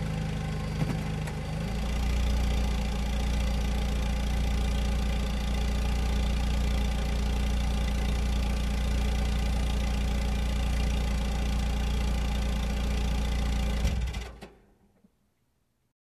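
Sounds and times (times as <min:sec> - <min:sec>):
truck engine starting, moving and shutting off: 0:00.0 - 0:14.5.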